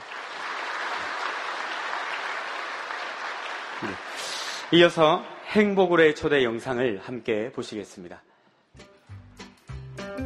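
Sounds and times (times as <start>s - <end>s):
audience applause: 0.0s - 5.2s
speech: 3.8s - 8.3s.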